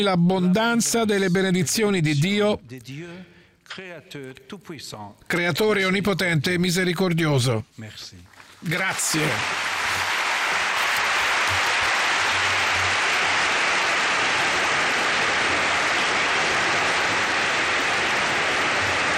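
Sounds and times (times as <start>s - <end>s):
speech: 0.0s - 9.7s
applause after a speech: 8.4s - 19.1s.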